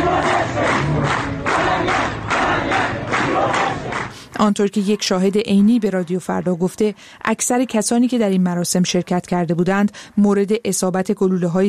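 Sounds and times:
crowd clamor at a funeral in a cemetery: 0:00.0 - 0:04.1
speech: 0:04.4 - 0:11.6.

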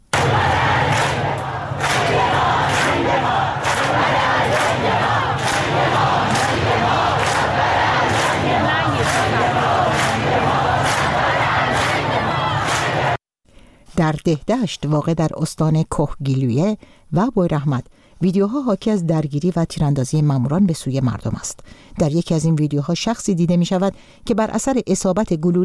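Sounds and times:
large crowd chanting protest slogans in the street: 0:00.0 - 0:13.2
speech: 0:14.0 - 0:25.6.

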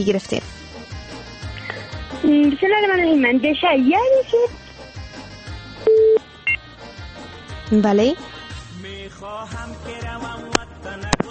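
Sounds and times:
speech: 0:00.0 - 0:00.6, 0:02.2 - 0:04.6, 0:07.7 - 0:08.4
short higher beep: 0:05.9 - 0:06.6
telephone tone after a caller's line was cut off: 0:05.9 - 0:06.6.

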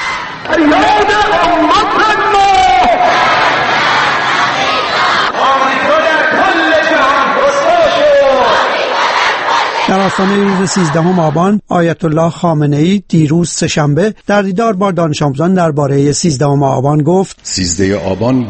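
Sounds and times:
speech: 0:00.5 - 0:01.6, 0:10.1 - 0:18.4
rally crowd chanting slogans: 0:02.7 - 0:11.4.

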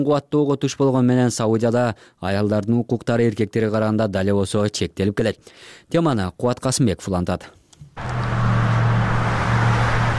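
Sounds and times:
speech: 0:00.0 - 0:08.2
car traffic on the streets of Saudi Arabia: 0:08.0 - 0:10.1.

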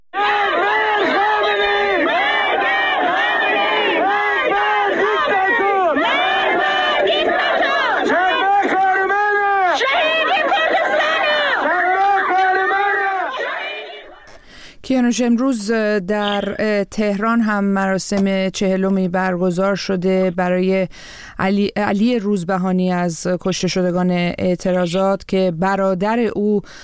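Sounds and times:
protesters and mourners chanting slogans at the grave of Shadman Ahmadi: 0:00.2 - 0:14.3
speech: 0:15.1 - 0:26.8.

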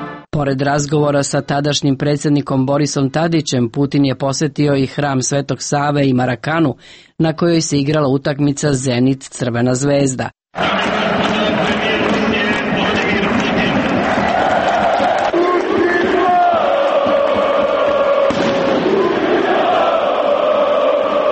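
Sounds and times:
speech: 0:00.4 - 0:10.9
stadium crowd roaring: 0:10.5 - 0:21.3.

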